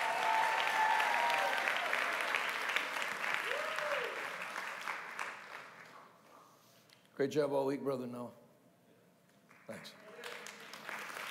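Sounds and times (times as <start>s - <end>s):
audience applause: 0.0s - 6.0s, 9.5s - 11.2s
speech: 7.2s - 8.4s.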